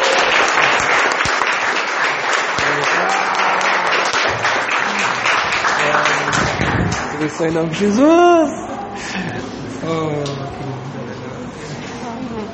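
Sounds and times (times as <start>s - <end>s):
church audience applauding: 0.0s - 7.8s
speech: 7.2s - 10.4s.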